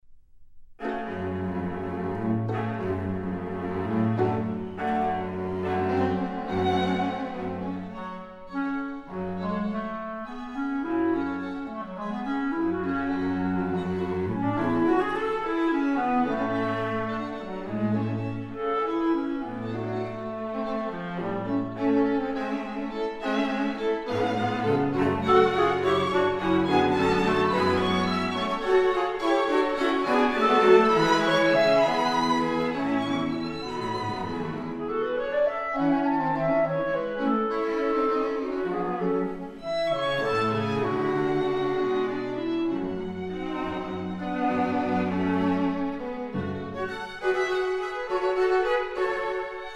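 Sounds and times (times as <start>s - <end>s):
quintet playing: 0.8s - 49.7s.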